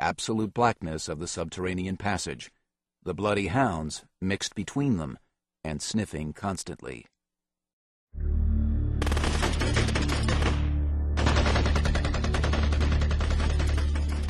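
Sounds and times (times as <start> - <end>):
speech: 0.1 - 7.2
automatic gunfire: 9.0 - 14.2.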